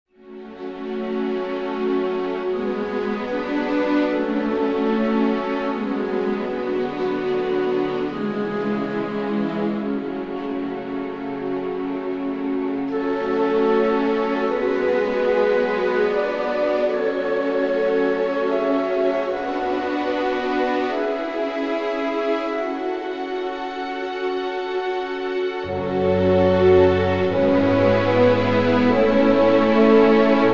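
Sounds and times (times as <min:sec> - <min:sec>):
slow ambient requiem music: 0:00.2 - 0:30.5.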